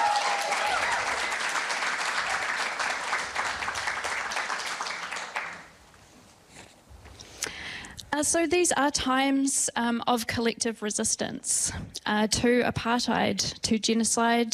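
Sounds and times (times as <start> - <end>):
audience applause: 0.0 - 5.7
speech: 8.2 - 14.5.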